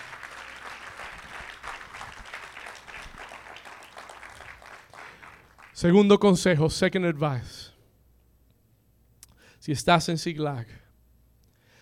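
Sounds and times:
applause: 0.0s - 5.9s
speech: 5.8s - 7.6s, 9.7s - 10.8s.

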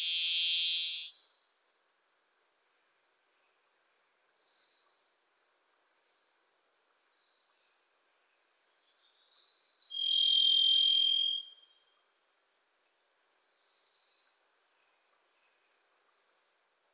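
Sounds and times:
varied thrush whistle: 0.0s - 1.3s, 9.8s - 11.8s
Wilson's Warbler chattering trills: 9.9s - 11.4s.

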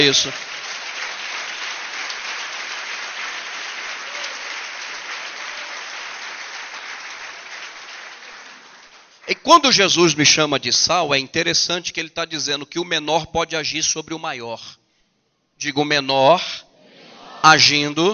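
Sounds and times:
speech: 0.0s - 0.6s, 9.4s - 14.8s, 15.6s - 16.6s, 17.4s - 18.1s
audience applause: 0.0s - 9.5s.

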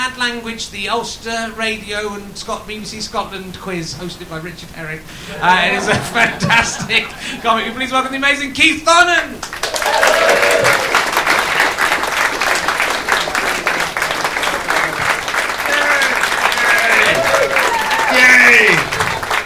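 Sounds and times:
speech: 0.1s - 10.7s
laughter: 5.2s - 7.9s, 12.6s - 19.4s
audience applause: 9.4s - 19.4s
scattered voices and whoops: 9.6s - 11.1s, 15.6s - 19.0s.

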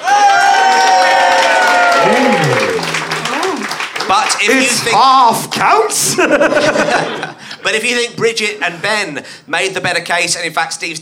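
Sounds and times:
cheers, whoops and shouts: 0.0s - 3.8s
crowd applause: 0.0s - 5.8s
speech: 4.3s - 11.0s
laughter: 5.8s - 7.8s.

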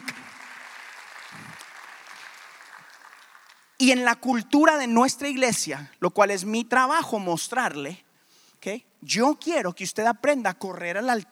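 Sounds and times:
audience applause: 0.0s - 3.7s
speech: 3.8s - 8.0s, 8.6s - 11.2s.

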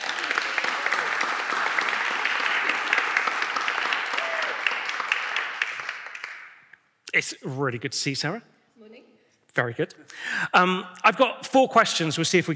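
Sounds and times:
audience clapping for a guest at a church gathering: 0.0s - 6.8s
speech: 7.1s - 8.5s, 9.6s - 12.5s.

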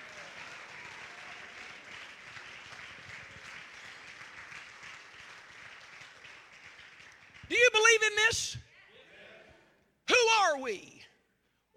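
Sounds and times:
crowd clapping: 0.0s - 8.3s
speech: 7.5s - 8.7s, 10.6s - 11.0s.

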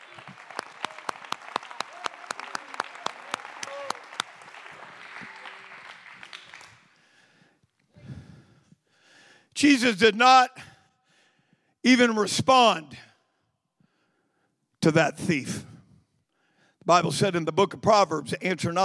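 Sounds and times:
crowd clapping in a steady rhythmic beat: 0.0s - 7.4s
speech: 9.6s - 10.6s, 11.8s - 13.0s, 14.8s - 15.7s, 16.9s - 18.8s.

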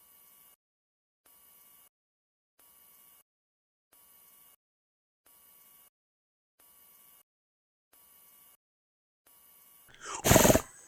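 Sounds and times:
disgruntled horse noise: 10.0s - 10.8s.

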